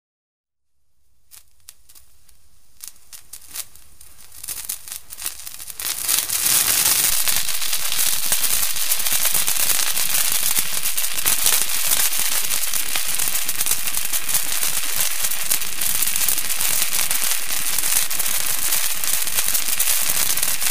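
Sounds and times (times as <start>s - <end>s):
pyrotechnics: 1.2s - 20.7s.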